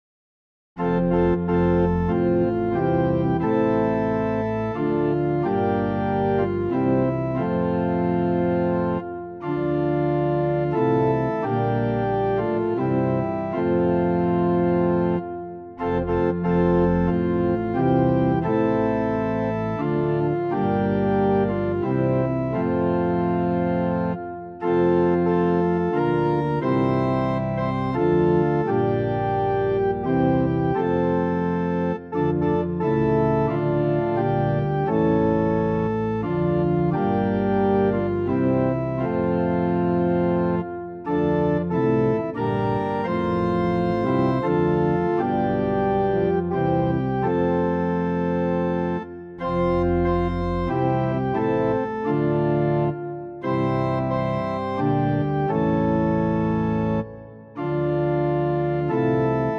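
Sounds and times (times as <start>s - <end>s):
music piece in equal temperament at pitch 440: 0.8s - 59.5s.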